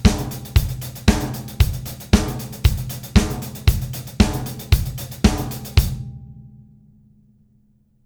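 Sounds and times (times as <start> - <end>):
disco music: 0.0 - 6.0.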